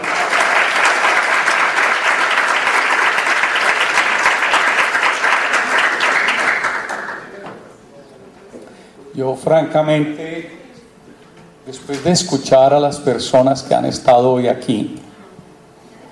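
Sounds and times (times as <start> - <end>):
audience applauding loudly: 0.0 - 7.4
speech: 9.2 - 10.6, 11.9 - 15.0.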